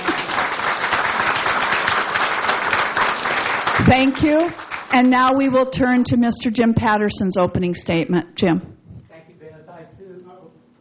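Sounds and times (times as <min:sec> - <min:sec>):
audience clapping: 0:00.0 - 0:05.6
speech: 0:03.9 - 0:08.7.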